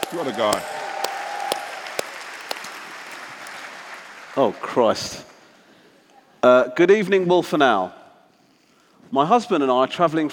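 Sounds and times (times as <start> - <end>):
live audience applause at a London show: 0.0 - 4.8
speech: 0.1 - 0.8, 4.4 - 5.3, 6.4 - 8.0, 9.1 - 10.3.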